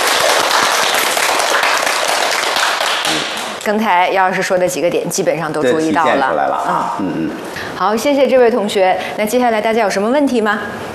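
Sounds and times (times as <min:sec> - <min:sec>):
audience applause: 0:00.0 - 0:03.6
speech: 0:03.6 - 0:10.9.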